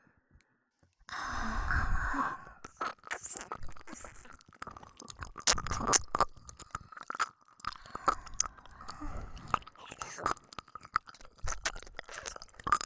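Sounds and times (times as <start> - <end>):
person whispering recorded with binaural microphone: 1.1 - 4.9, 7.9 - 10.5
ear licking on both sides recorded with binaural microphone: 2.6 - 12.8.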